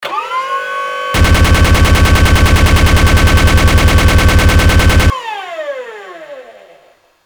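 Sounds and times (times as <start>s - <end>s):
minigun: 1.2s - 5.1s.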